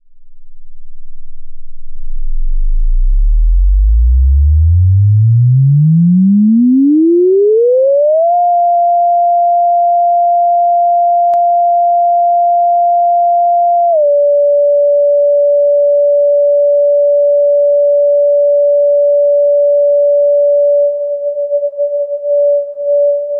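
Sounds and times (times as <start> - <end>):
sine tone: 0.0 - 23.3.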